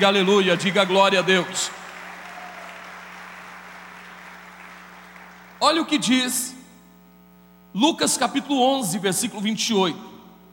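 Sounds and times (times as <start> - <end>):
speech: 0.0 - 1.9, 5.7 - 6.6, 7.7 - 10.1
audience applause: 0.0 - 5.6
low constant hum: 0.0 - 10.5.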